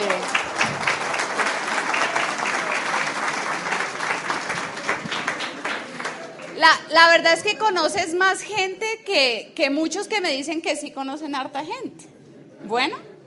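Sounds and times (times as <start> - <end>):
audience applause: 0.0 - 6.7
speech: 6.6 - 12.1, 12.7 - 13.1.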